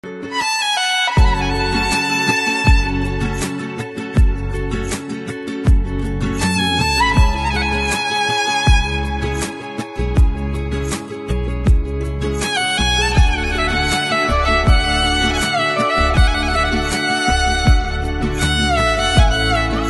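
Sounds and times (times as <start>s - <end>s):
violin: 0.1s - 19.8s.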